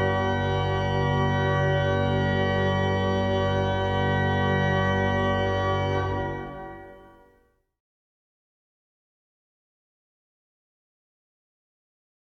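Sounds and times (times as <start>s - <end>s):
organ: 0.0s - 7.4s.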